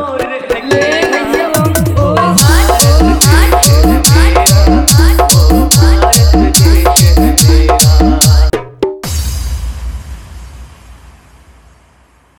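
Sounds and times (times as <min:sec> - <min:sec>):
Desh Bhakti patriotic song with JhanJhan bass: 0:00.0 - 0:08.5.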